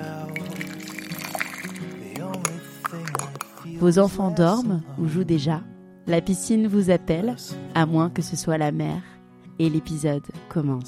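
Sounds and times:
coffee pouring from a coffee maker: 0.0s - 3.6s
speech: 3.6s - 10.8s.

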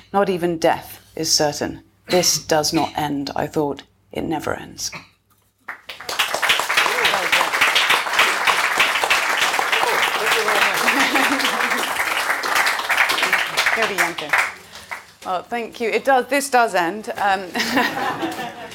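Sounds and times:
speech: 0.1s - 5.1s, 13.8s - 14.5s, 15.2s - 18.5s
audience applause: 5.7s - 15.2s
laughter: 9.6s - 12.4s, 17.5s - 18.7s.

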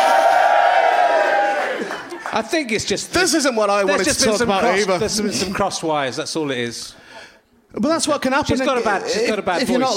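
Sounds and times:
crowd cheering loudly with shouting and whooping voices: 0.0s - 2.5s
speech: 2.4s - 7.0s, 7.7s - 9.9s.

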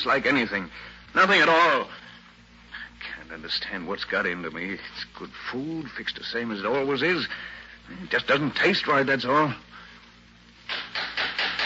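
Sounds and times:
speech: 0.0s - 2.1s, 3.3s - 9.7s
knocking: 10.7s - 11.6s.

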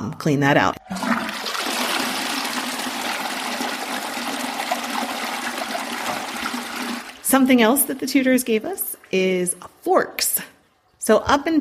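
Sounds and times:
speech: 0.2s - 0.9s, 7.3s - 10.3s, 11.1s - 11.5s
toilet flushing with water released from a tank above the bowl: 0.8s - 9.0s.

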